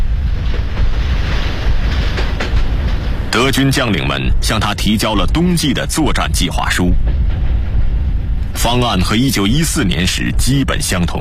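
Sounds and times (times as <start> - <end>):
special train rumbling along the tracks: 0.0 - 11.1
train wheels clattering over rail joints: 0.4 - 3.6
speech: 3.4 - 7.3, 8.6 - 11.1.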